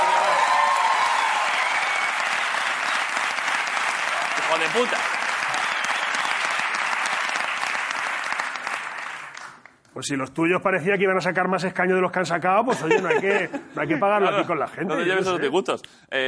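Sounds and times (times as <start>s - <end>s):
audience applause: 0.0s - 9.7s
speech: 4.6s - 5.1s, 10.0s - 16.2s.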